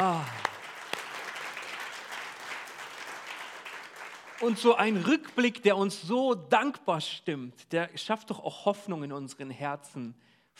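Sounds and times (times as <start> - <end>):
audience applause: 0.0 - 5.4
speech: 4.4 - 10.5.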